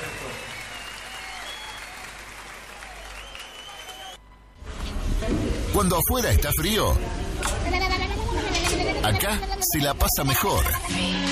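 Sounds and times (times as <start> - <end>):
applause: 0.0 - 4.2
speech: 5.3 - 8.0, 9.0 - 11.2.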